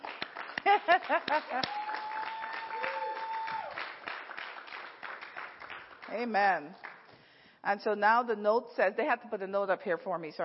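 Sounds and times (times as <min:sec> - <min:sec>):
audience cheering and applauding: 0:00.0 - 0:06.1
speech: 0:00.8 - 0:02.1, 0:06.1 - 0:06.8, 0:07.6 - 0:10.4
whooping: 0:01.5 - 0:03.9.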